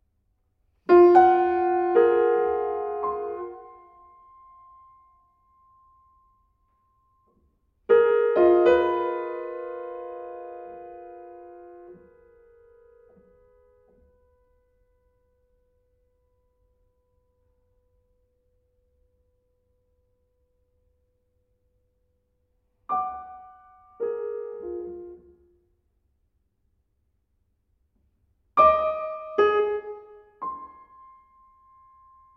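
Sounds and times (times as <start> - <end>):
piano piece: 0.8 - 15.4, 22.5 - 25.8, 28.5 - 32.3.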